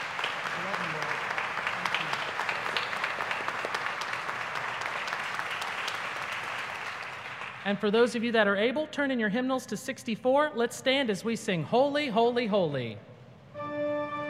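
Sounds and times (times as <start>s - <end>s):
audience applause: 0.0s - 7.7s
speech: 7.7s - 13.1s.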